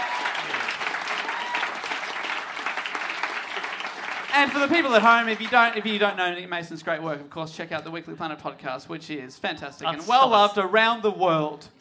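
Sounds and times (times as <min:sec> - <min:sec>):
audience applause: 0:00.0 - 0:06.2
speech: 0:04.4 - 0:11.8.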